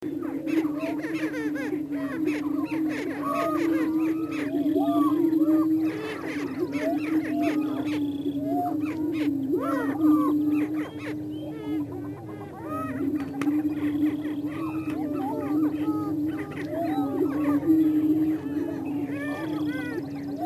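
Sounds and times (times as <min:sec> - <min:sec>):
greater prairie chickens low booming: 0:00.0 - 0:20.4.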